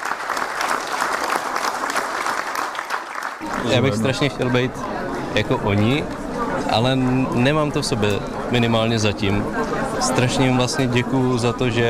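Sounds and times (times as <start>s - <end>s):
audience applause in a sold-out hall: 0.0s - 5.2s
speech: 3.6s - 11.8s.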